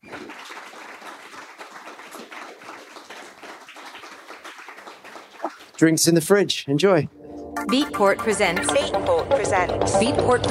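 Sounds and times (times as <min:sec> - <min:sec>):
audience applause for panelists: 0:00.0 - 0:06.1
speech: 0:05.8 - 0:10.4.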